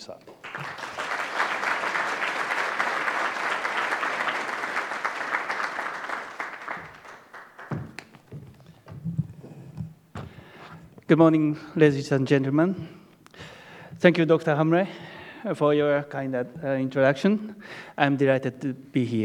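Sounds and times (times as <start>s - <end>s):
speech: 0.0s - 0.8s, 11.1s - 13.0s, 14.0s - 19.2s
audience applause: 0.0s - 8.6s.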